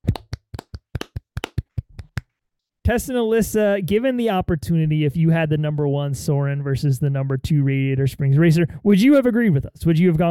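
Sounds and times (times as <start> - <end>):
hands clapping: 0.0 - 2.3
speech: 2.9 - 10.3.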